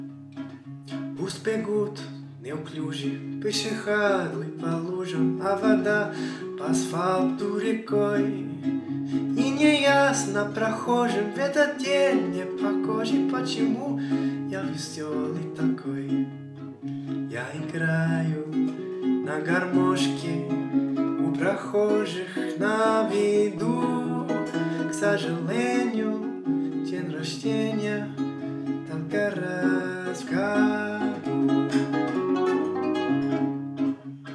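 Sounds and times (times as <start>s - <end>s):
birthday song in Russian: 0.9s - 34.3s.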